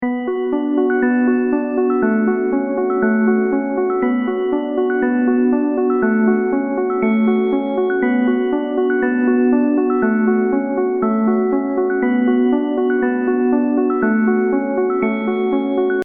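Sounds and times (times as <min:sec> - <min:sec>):
ringtone: 0:00.0 - 0:16.0.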